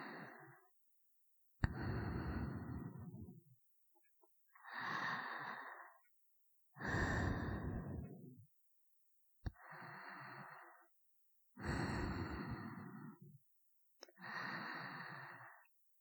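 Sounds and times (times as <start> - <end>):
person breathing in sleep: 0.0 - 0.7, 1.6 - 3.5, 4.6 - 6.0, 6.8 - 8.4, 9.5 - 10.9, 11.6 - 13.4, 14.1 - 15.7.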